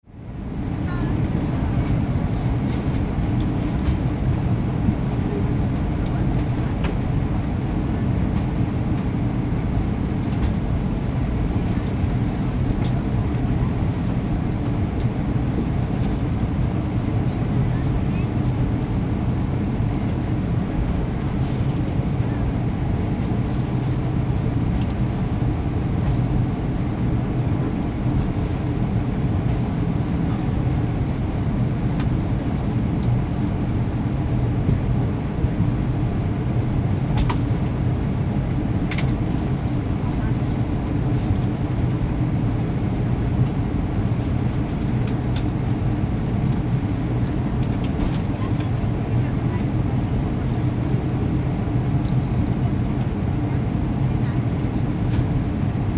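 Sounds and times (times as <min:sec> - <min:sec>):
Airbus A319 jet cabin interior noise: 0:00.1 - 0:55.9.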